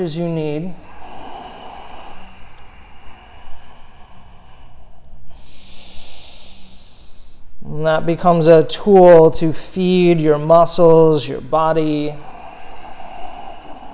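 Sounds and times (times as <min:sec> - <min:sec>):
speech: 0:00.0 - 0:00.9, 0:07.8 - 0:12.3
ujjayi yoga breathing: 0:00.0 - 0:07.6, 0:12.0 - 0:13.9.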